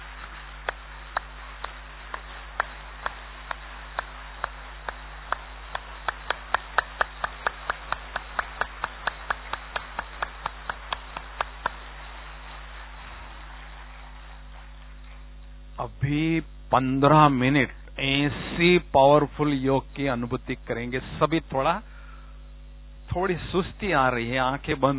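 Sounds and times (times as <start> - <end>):
audience clapping hands in unison: 0.0 - 15.4
low constant hum: 0.0 - 24.9
speech: 16.0 - 21.9, 23.1 - 24.9.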